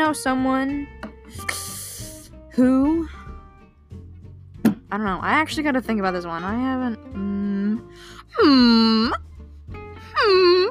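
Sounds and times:
speech: 0.1 - 1.6, 2.6 - 3.2, 4.9 - 9.3, 10.2 - 10.6
voice imitating whale song: 8.3 - 9.2, 10.1 - 10.6.

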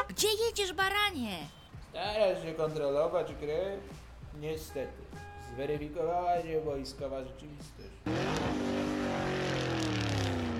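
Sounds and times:
speech: 0.2 - 8.7
car engine driving away: 8.1 - 10.5.

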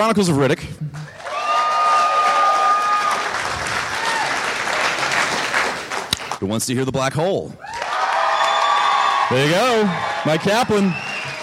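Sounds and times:
speech: 0.0 - 1.1, 6.4 - 7.7, 9.3 - 11.1
audience applause and cheering: 1.0 - 6.4, 7.6 - 11.4.

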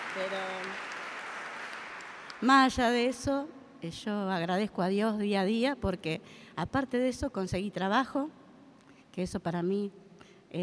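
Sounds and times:
audience applause: 0.0 - 2.4
speech: 0.2 - 0.9, 2.4 - 8.4, 9.2 - 10.6.

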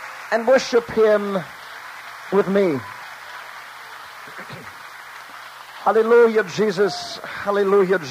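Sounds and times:
weak audience applause: 0.0 - 8.0
speech: 0.3 - 1.6, 2.3 - 3.0, 5.8 - 8.0.

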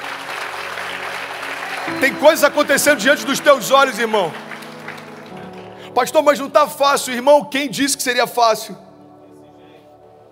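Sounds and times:
audience applause: 0.0 - 6.4
speech: 1.9 - 4.4, 6.0 - 8.9.

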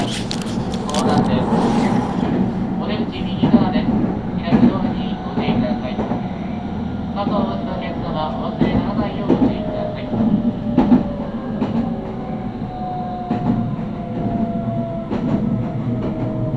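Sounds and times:
Meitetsu train rolling along the Inuyama and Hiromi lines: 0.0 - 16.5.

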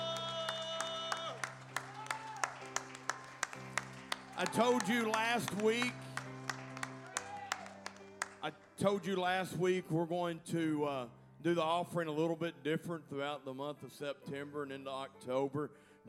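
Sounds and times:
audience clapping rhythmically in praise: 0.0 - 8.6
sustained keyboard chords: 0.0 - 15.5
speech: 4.4 - 6.0, 8.4 - 16.0.

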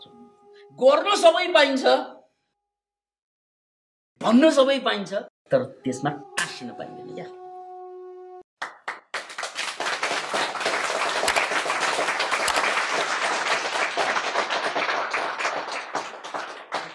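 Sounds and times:
speech: 0.8 - 2.2, 4.2 - 7.4
audience clapping after a talk on yoga: 8.6 - 16.9.

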